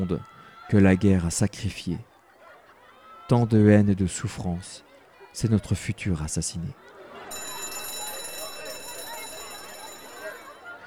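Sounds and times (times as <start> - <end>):
speech: 0.0 - 2.1, 3.3 - 6.9
laughter: 0.0 - 3.8, 4.7 - 5.6, 6.7 - 10.8
murmur of voices: 0.0 - 10.8
school bell ringing: 7.2 - 10.8.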